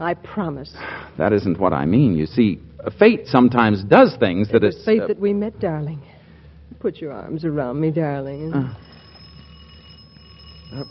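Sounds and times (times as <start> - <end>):
speech: 0.0 - 6.1, 6.8 - 8.9
doorbell ringing: 8.2 - 10.8.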